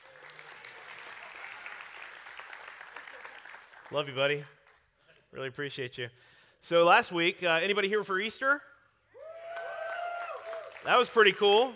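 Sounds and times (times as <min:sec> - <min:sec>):
audience applause: 0:00.0 - 0:04.0, 0:09.4 - 0:11.7
speech: 0:03.9 - 0:04.6, 0:05.3 - 0:08.7, 0:10.8 - 0:11.7.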